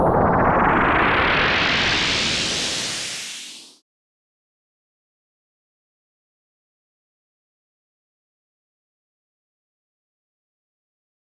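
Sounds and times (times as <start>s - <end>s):
explosion: 0.0s - 3.6s.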